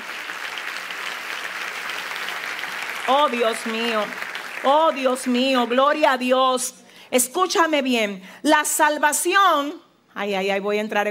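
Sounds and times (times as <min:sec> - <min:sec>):
audience applause: 0:00.0 - 0:05.8
speech: 0:03.1 - 0:11.0.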